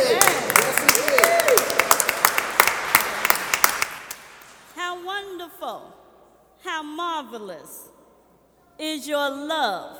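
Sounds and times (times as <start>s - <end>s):
audience clapping: 0.0s - 4.7s
speech: 9.0s - 9.9s.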